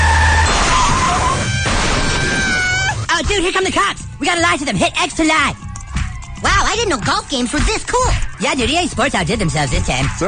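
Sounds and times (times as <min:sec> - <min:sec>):
car crash from a driving video game in a South Park episode: 0:00.0 - 0:03.0
speech: 0:03.5 - 0:05.7, 0:06.4 - 0:10.2.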